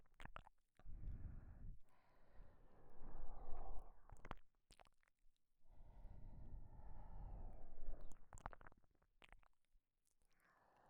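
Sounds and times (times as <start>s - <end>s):
breathing with voice leaking in the left ear on a KU100: 0.9s - 4.1s, 5.7s - 7.9s, 10.3s - 10.8s.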